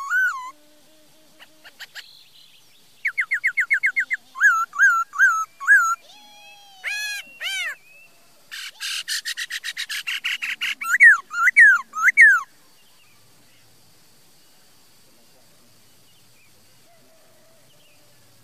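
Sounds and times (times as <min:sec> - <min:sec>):
laughingthrush song: 0:03.0 - 0:06.1, 0:08.9 - 0:12.5.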